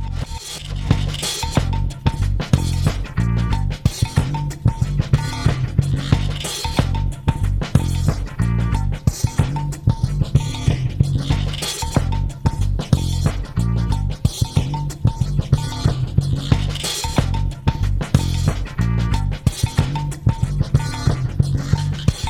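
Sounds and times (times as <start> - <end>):
rocksteady music: 0.2 - 22.2.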